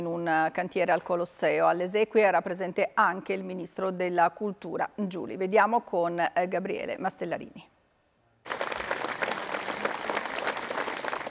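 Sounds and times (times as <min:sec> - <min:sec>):
speech: 0:00.0 - 0:07.7
large crowd applause as coffin leaves funeral: 0:08.5 - 0:11.2.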